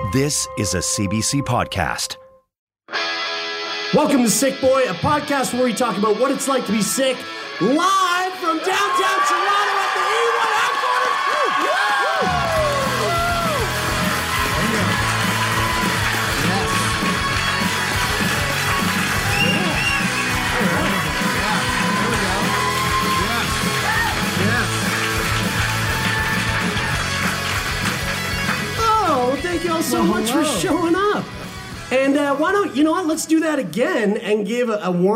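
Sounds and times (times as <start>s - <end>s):
speech: 0.1s - 2.2s, 3.9s - 9.7s, 29.5s - 31.3s, 31.9s - 35.1s
live audience in downtown Toronto cheering and applauding: 8.3s - 31.9s.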